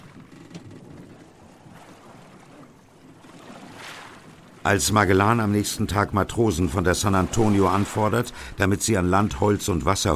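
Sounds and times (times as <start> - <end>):
steady sloshing of a rowing boat rowed at night: 0.0 - 9.5
soft wash of wind: 0.0 - 10.1
splashes: 1.4 - 4.7, 6.5 - 8.6
speech: 4.6 - 10.1.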